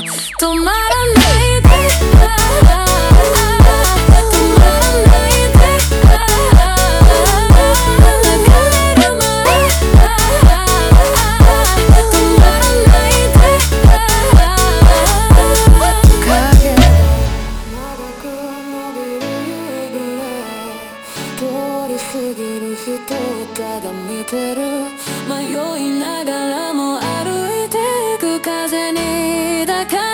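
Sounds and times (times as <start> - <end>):
slowed montagem music: 0.2 - 21.1.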